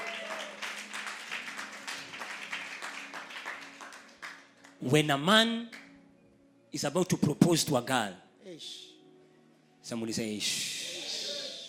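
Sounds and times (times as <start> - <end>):
audience applause: 0.0 - 4.5
speech: 4.8 - 5.8, 6.7 - 8.9, 9.8 - 10.7.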